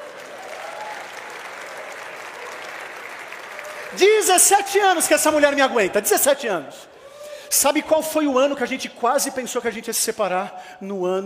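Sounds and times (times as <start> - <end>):
crowd round of applause: 0.0 - 4.9
speech: 3.9 - 11.2.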